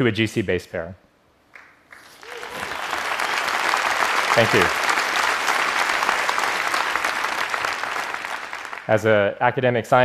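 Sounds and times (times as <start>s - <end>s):
speech: 0.0s - 1.0s, 4.4s - 4.8s, 8.9s - 10.0s
audience applause: 1.6s - 9.2s.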